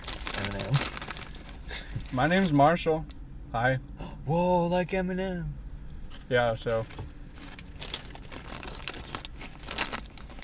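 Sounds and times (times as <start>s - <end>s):
chip bag crinkling: 0.0s - 2.4s, 7.4s - 10.4s
speech: 2.1s - 5.6s, 6.3s - 7.0s.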